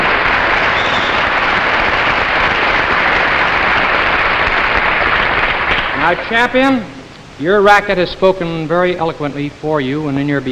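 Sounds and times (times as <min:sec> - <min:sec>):
crowd cheering: 0:00.0 - 0:06.4
speech: 0:06.1 - 0:10.5.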